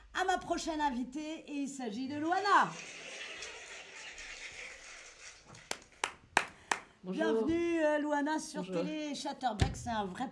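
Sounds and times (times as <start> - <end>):
speech: 0.4 - 3.1, 7.0 - 10.2
crowd applause: 2.7 - 6.8
individual hand claps: 5.6 - 7.0.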